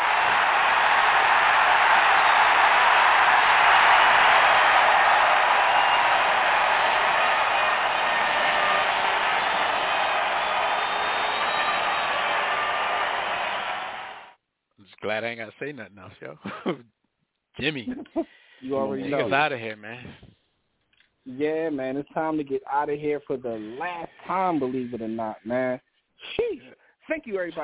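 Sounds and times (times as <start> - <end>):
crowd cheering wildly: 0.0 - 14.4
speech: 15.3 - 17.0, 17.6 - 20.2, 21.3 - 25.8, 27.2 - 27.6
laughter: 17.8 - 18.3.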